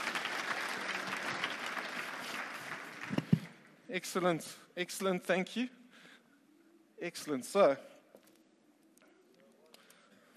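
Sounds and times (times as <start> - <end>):
audience applause: 0.0 - 3.8
speech: 3.9 - 5.8, 7.0 - 7.9.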